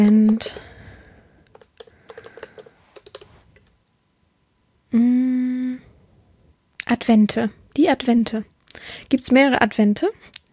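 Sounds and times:
speech: 0.0 - 0.7, 7.1 - 10.4
typing on a computer keyboard: 0.0 - 0.8, 1.4 - 3.7.

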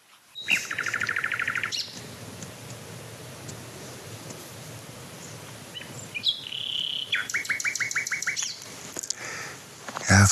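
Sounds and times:
nightingale singing: 0.3 - 2.8, 5.1 - 8.7.

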